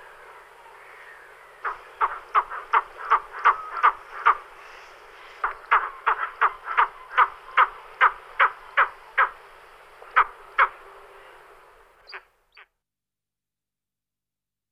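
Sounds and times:
White-tailed eagle Haliaeetus albicilla calling: 0.8s - 9.4s.

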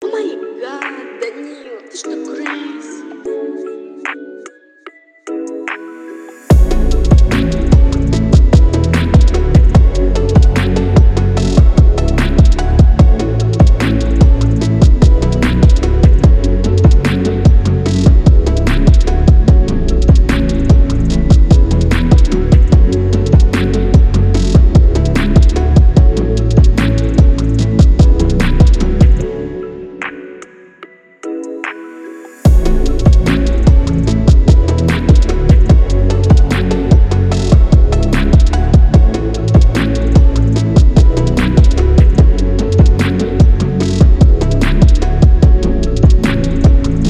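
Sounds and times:
phonk trap beat: 6.5s - 29.3s, 32.5s - 47.0s.

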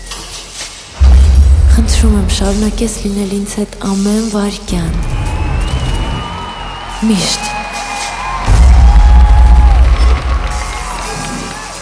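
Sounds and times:
speech: 1.9s - 5.3s, 7.0s - 7.6s
audience cheering and applauding: 4.9s - 11.8s.

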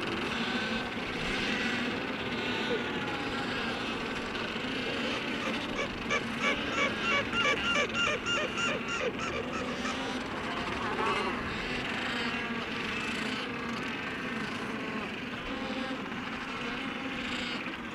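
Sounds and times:
babble of overlapping calls from a crowded albatross colony: 0.1s - 17.9s
black-browed albatross courtship calls: 4.8s - 11.4s.

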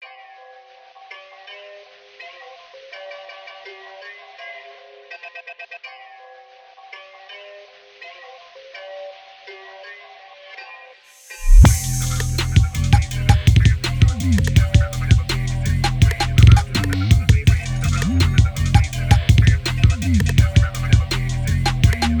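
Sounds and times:
phonk music: 11.3s - 22.1s.

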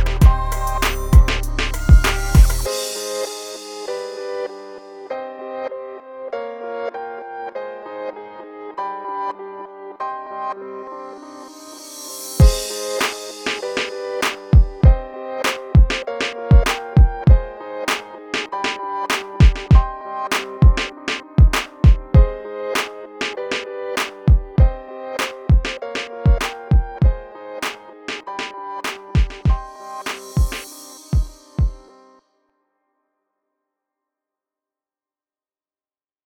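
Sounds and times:
RnB beat: 0.0s - 2.7s, 12.4s - 27.2s, 28.1s - 31.8s.

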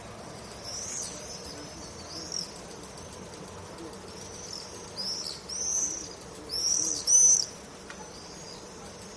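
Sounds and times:
swifts screaming: 0.1s - 9.1s.

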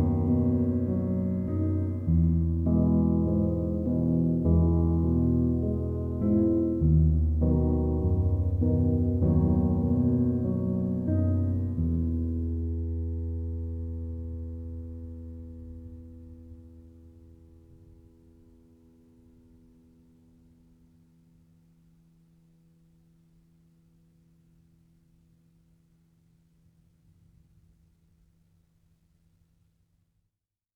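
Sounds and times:
relaxing chillout piano music: 0.0s - 22.3s.

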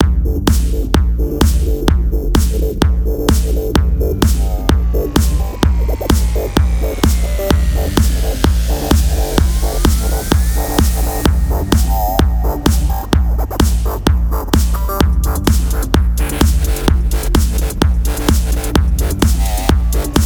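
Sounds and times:
dance music: 0.0s - 20.2s.

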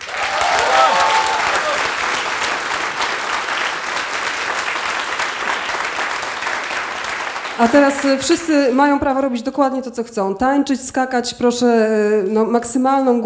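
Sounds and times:
concert audience applauding at a radio station's live show: 0.0s - 8.8s
speech: 7.6s - 13.2s.

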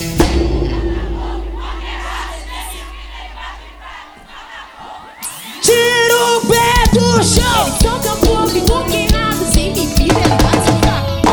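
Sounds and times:
concert crowd singing along: 0.0s - 11.3s.

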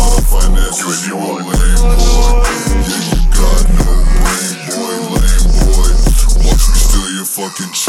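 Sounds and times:
33 to 37 Hz bass tone: 0.0s - 0.7s, 1.6s - 4.3s, 5.2s - 7.0s.

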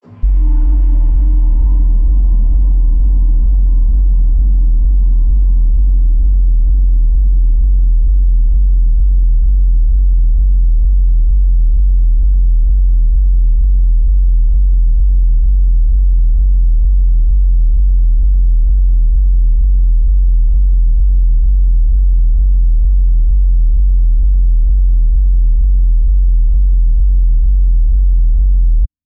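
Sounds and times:
sub bass: 0.0s - 29.0s.

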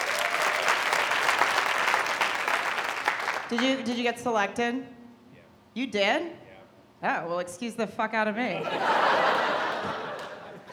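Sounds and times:
audience applause: 0.0s - 3.6s
speech: 3.5s - 5.0s, 5.8s - 6.4s, 7.0s - 9.6s
laughter: 8.5s - 10.7s.

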